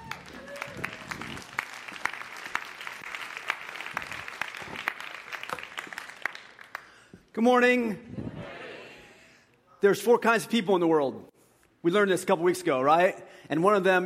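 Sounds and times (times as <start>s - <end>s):
people cheering: 0.0s - 6.2s
people clapping: 0.0s - 7.1s
speech: 7.4s - 8.2s, 9.8s - 14.0s.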